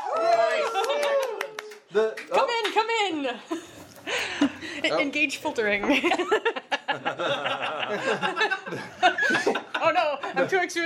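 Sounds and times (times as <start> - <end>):
people whooping and cheering: 0.0 - 1.7
hand claps: 0.0 - 2.9
speech: 1.9 - 3.8, 4.4 - 10.8
laughter: 3.5 - 10.8.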